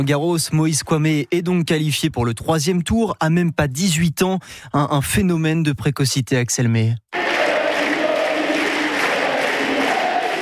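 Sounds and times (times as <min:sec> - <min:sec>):
speech: 0:00.0 - 0:07.1
tennis crowd at Roland-Garros chanting a player's name: 0:07.2 - 0:10.4.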